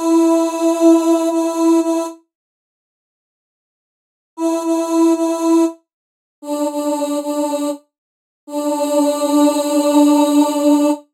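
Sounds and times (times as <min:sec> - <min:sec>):
chorus voice: 0:00.0 - 0:02.2, 0:04.4 - 0:05.8, 0:06.4 - 0:07.9, 0:08.5 - 0:11.1.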